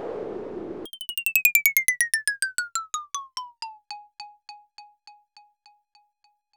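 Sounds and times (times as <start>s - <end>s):
Roland BK-5 keyboard sound effects: 0.9s - 5.6s.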